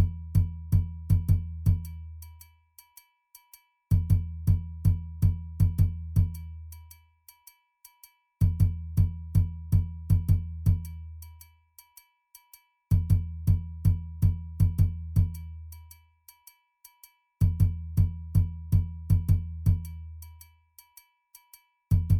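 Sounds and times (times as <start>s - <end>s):
doundoumba bass drum playing: 0.0s - 1.9s, 3.9s - 6.4s, 8.4s - 10.9s, 12.9s - 15.4s, 17.4s - 19.9s, 21.9s - 22.1s.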